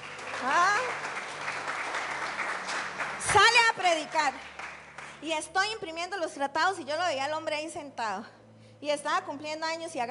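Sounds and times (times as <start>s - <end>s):
audience applause: 0.0s - 5.2s
speech: 5.2s - 10.0s.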